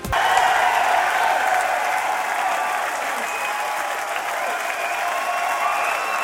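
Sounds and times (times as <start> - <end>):
audience applause at a show: 0.0 - 6.2.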